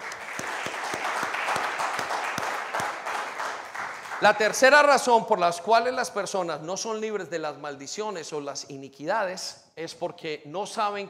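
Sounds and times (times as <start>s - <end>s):
audience applause: 0.0s - 4.8s
speech: 4.2s - 11.0s.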